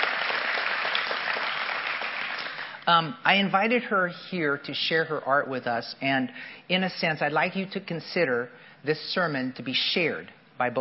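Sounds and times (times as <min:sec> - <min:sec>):
audience clapping to welcome a guest at a church sermon: 0:00.0 - 0:02.8
speech: 0:02.9 - 0:10.8.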